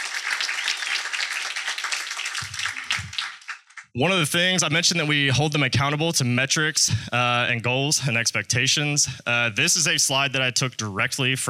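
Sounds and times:
applause: 0.0s - 4.0s
speech: 4.0s - 11.4s.

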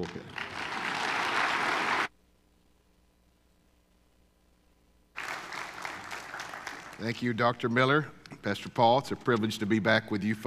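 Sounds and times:
speech: 0.0s - 0.4s, 7.0s - 10.4s
congregation applauding to welcome a speaker to the pulpit: 0.0s - 2.1s, 5.2s - 7.4s.

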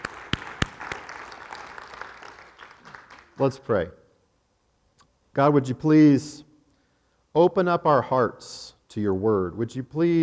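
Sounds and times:
audience applauding: 0.0s - 3.5s
speech: 3.4s - 4.0s, 5.3s - 6.5s, 7.4s - 10.2s.

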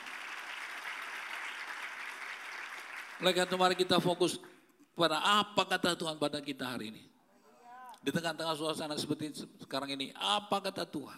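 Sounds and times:
audience applause: 0.0s - 4.1s
speech: 3.2s - 7.1s, 8.0s - 11.1s.

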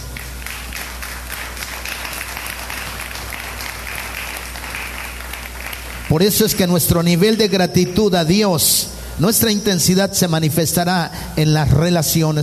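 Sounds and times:
audience applause: 0.2s - 6.6s
speech: 6.1s - 12.4s.

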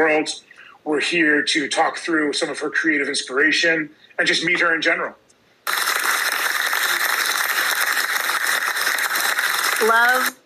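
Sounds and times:
speech: 0.0s - 5.8s, 9.8s - 10.4s
applause: 5.6s - 10.4s.

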